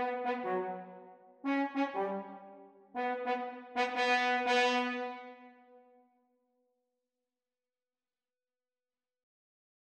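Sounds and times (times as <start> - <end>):
French horn duets: 0.0 - 0.9, 1.5 - 5.4.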